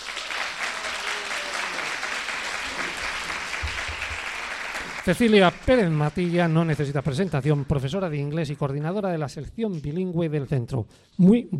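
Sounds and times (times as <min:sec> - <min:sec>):
audience applause: 0:00.0 - 0:08.0
speech: 0:05.0 - 0:11.5.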